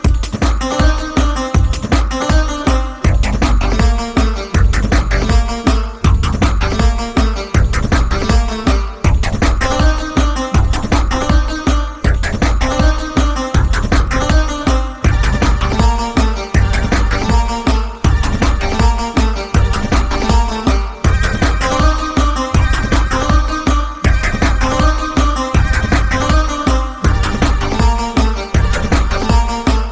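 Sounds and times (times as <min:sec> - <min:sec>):
instrumental running workout music: 0:00.0 - 0:29.9.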